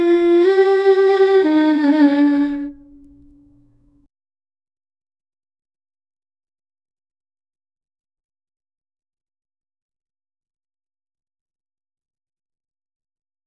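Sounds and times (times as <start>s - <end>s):
female voice singing a sorrowful aria: 0.0s - 3.5s.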